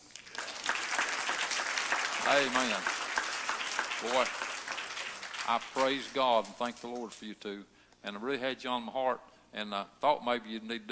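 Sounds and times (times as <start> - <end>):
audience clapping: 0.0 - 7.2
speech: 2.3 - 3.0, 4.0 - 4.5, 5.5 - 10.9.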